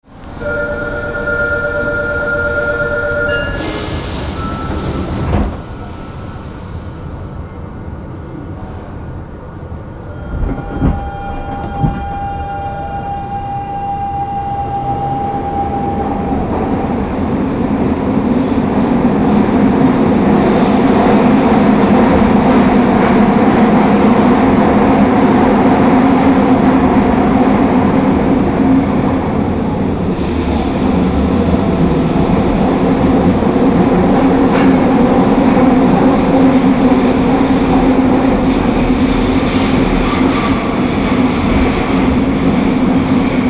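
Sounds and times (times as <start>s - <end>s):
subway: 0.0s - 43.4s.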